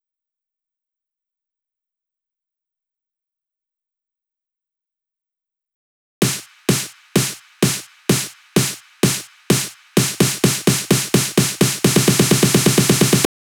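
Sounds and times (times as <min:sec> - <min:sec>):
snare drum loop: 0:06.2 - 0:13.3.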